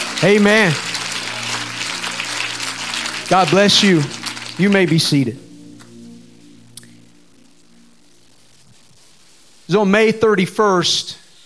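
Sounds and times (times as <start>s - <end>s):
large crowd clapping: 0.0s - 6.0s
low hum: 0.0s - 9.7s
speech: 0.2s - 0.9s, 3.3s - 5.4s, 9.7s - 11.2s.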